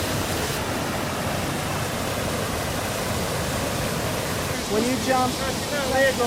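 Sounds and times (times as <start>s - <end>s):
rushing water current: 0.0s - 6.2s
waves: 0.0s - 6.2s
speech: 4.7s - 6.2s.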